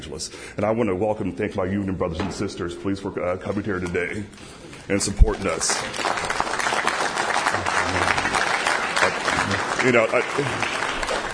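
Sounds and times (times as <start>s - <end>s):
speech: 0.0s - 6.1s, 9.8s - 10.8s
crowd applauding: 5.2s - 11.3s.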